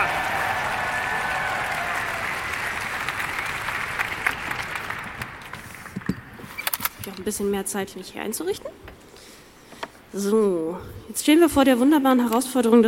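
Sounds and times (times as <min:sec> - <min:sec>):
audience applause: 0:00.0 - 0:06.1
speech: 0:07.2 - 0:08.8, 0:10.1 - 0:12.8.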